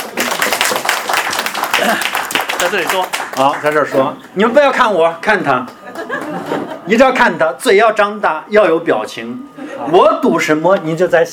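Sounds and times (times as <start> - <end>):
audience applause greeting a volunteer: 0.0 - 4.3
laughter: 1.4 - 2.4, 5.7 - 7.4
speech: 1.9 - 5.8, 6.4 - 11.3.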